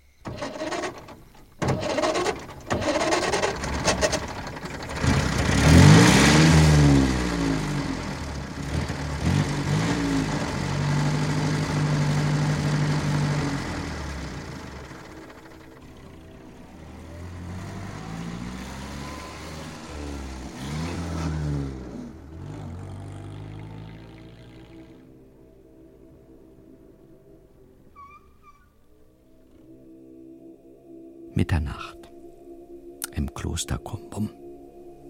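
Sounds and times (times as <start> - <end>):
car engine starting and driving off in a radio play: 0.1 - 27.4
speech: 33.4 - 34.4.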